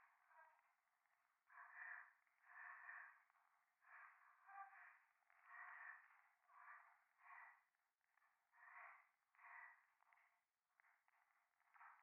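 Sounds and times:
breathing in the left ear: 0:01.5 - 0:07.6, 0:08.6 - 0:10.4.

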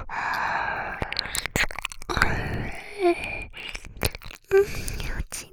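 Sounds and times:
ear licking: 0:00.1 - 0:05.4.

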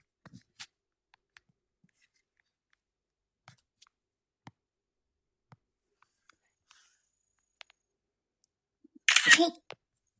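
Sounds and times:
camera shutter clicks photographing a pet sheet: 0:09.1 - 0:09.6
speech: 0:09.4 - 0:09.6.

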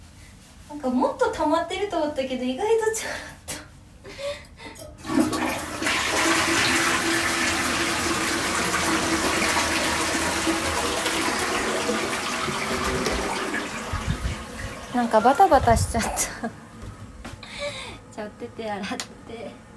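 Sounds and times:
speech: 0:00.7 - 0:03.4, 0:15.0 - 0:16.6, 0:18.2 - 0:19.7
toilet flushing and refilling tank: 0:04.8 - 0:15.6.

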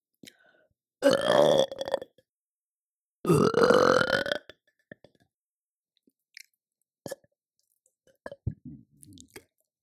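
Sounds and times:
person burping for ASMR: 0:01.0 - 0:02.0, 0:03.3 - 0:04.4.

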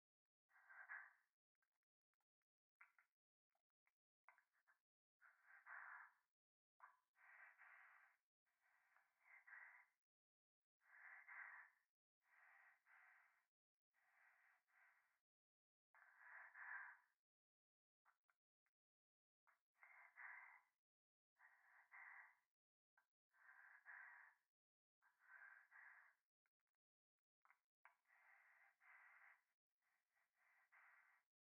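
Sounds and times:
breathing pressed against the right ear in a bath: 0:05.2 - 0:06.2, 0:07.2 - 0:10.0, 0:10.8 - 0:15.2, 0:16.0 - 0:17.2, 0:19.8 - 0:20.8, 0:21.4 - 0:22.5, 0:23.4 - 0:26.2, 0:27.9 - 0:29.5, 0:30.2 - 0:31.3.

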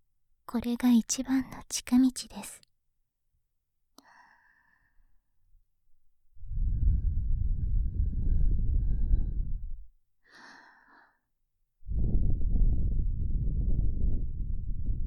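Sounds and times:
speech: 0:00.5 - 0:02.7
warm exhaled breath: 0:06.4 - 0:11.2, 0:11.9 - 0:14.2.

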